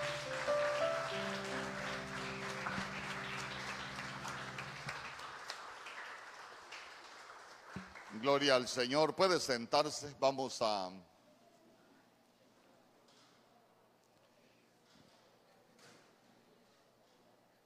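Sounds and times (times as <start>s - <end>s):
audience clapping hands: 0.0s - 8.9s
speech: 8.2s - 11.1s.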